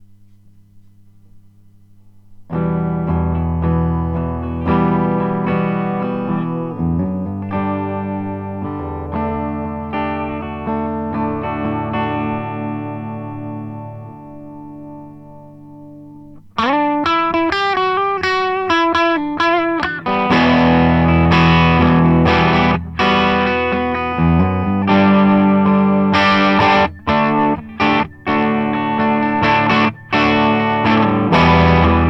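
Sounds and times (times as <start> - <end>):
clean guitar with reverb: 2.4 - 32.0.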